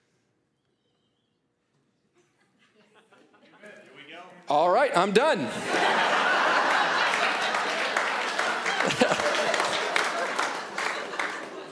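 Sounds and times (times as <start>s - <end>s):
laughter: 2.1s - 3.9s, 5.5s - 11.7s
speech: 4.5s - 6.2s
audience applause after a sermon: 5.7s - 11.7s.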